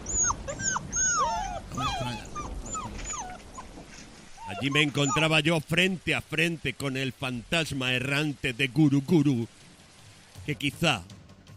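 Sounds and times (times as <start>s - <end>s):
frightened dog whimpering: 0.0s - 3.8s, 4.4s - 5.3s
faint hiss: 0.0s - 11.5s
speech: 4.6s - 9.6s, 10.4s - 11.2s.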